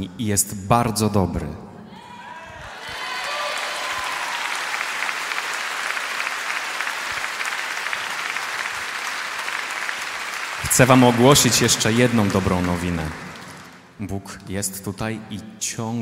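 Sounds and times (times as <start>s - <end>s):
speech: 0.0s - 1.7s, 10.8s - 13.3s, 14.0s - 15.9s
audience applause: 2.6s - 14.0s.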